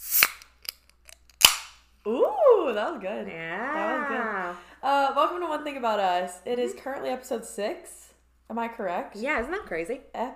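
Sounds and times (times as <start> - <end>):
Diet Coke can being opened: 0.0 - 1.7
speech: 2.0 - 10.3.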